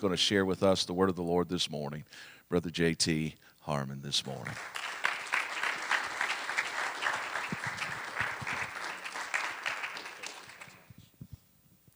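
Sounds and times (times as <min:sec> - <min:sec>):
speech: 0:00.0 - 0:04.9
audience applause: 0:04.5 - 0:11.0.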